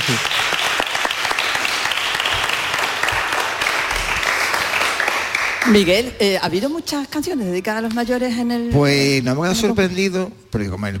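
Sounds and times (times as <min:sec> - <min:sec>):
audience applause: 0:00.0 - 0:05.8
speech: 0:00.1 - 0:00.4, 0:05.7 - 0:10.9.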